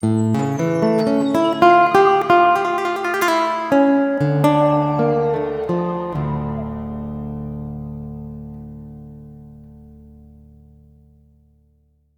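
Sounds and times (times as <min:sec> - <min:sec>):
lyrical lute music: 0:00.0 - 0:09.6.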